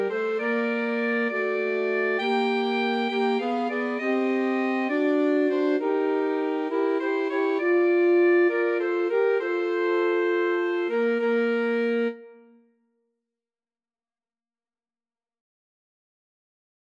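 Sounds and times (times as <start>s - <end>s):
alto saxophone trio: 0.0s - 12.5s.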